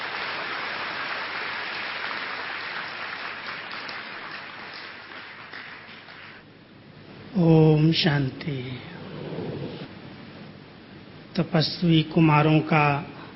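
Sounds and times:
loud applause welcoming a guest: 0.0 - 6.4
speech: 7.4 - 9.0, 11.4 - 13.2.

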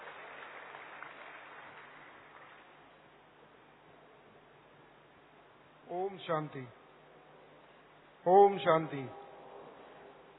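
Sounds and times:
audience clapping to welcome speaker: 0.0 - 2.8
speech: 5.9 - 6.8, 8.2 - 9.2.

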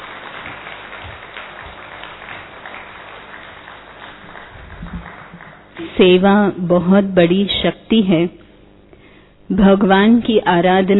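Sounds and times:
audience applause: 0.0 - 6.0
speech: 5.8 - 8.4, 9.5 - 10.9.

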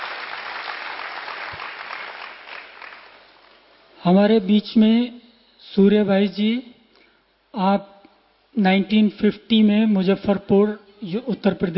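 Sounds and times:
loud audience applause: 0.0 - 3.3
speech: 4.0 - 6.7, 7.6 - 7.9, 8.6 - 11.7.

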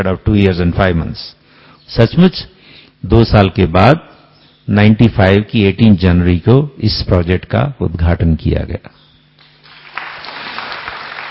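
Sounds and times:
speech: 0.0 - 9.0
audience applause: 9.6 - 11.3.

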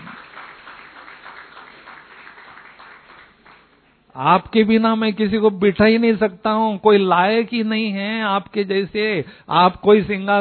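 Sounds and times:
children clapping: 0.0 - 4.0
speech: 4.2 - 10.3.

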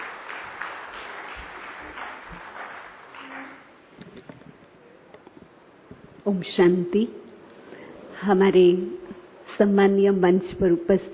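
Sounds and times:
soft audience applause welcoming a speaker at a Brahma Kumaris gathering: 0.0 - 4.0
speech: 6.3 - 7.2, 8.2 - 9.0, 9.6 - 11.1.

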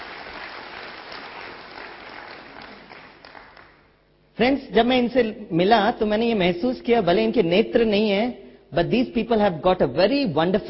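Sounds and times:
audience applause: 0.0 - 3.8
speech: 4.4 - 10.6.

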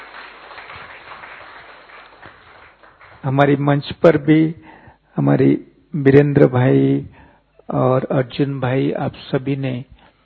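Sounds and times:
audience clapping with both hands: 0.0 - 3.6
speech: 3.2 - 10.0.

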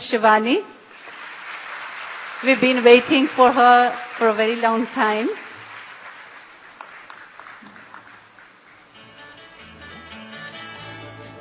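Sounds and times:
speech: 0.1 - 0.7, 2.4 - 5.4
audience applause welcoming a speaker at a Brahma Kumaris gathering: 0.9 - 8.9.

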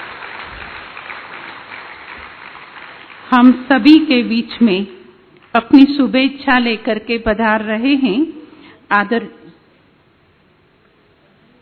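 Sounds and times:
audience applause: 0.0 - 3.5
speech: 3.3 - 9.4.

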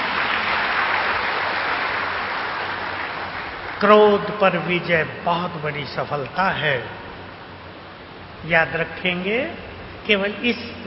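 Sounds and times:
audience clapping: 0.0 - 4.3
speech: 3.8 - 7.0, 8.4 - 10.8.

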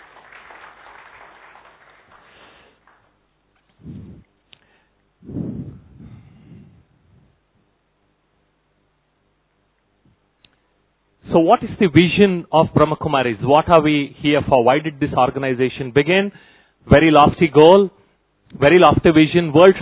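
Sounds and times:
audience clapping: 0.0 - 3.8
speech: 11.4 - 19.8.

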